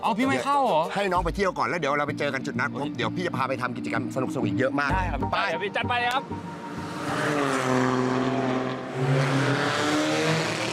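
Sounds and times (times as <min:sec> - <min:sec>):
speech: 0:00.0 - 0:07.8
race car engine roaring past on track: 0:06.1 - 0:10.7.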